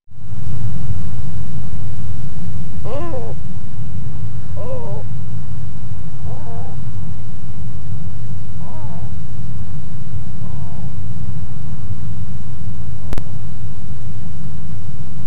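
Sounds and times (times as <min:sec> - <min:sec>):
loud steady low rumble: 0:00.1 - 0:15.2
Black-crowned Night Heron calling: 0:02.8 - 0:03.4, 0:04.6 - 0:05.2, 0:06.2 - 0:07.0, 0:08.6 - 0:09.2.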